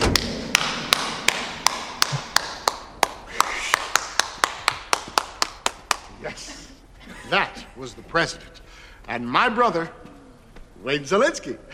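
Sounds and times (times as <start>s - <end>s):
lone person clapping slowly: 0.1s - 6.2s
speech: 7.3s - 10.1s, 10.8s - 11.7s.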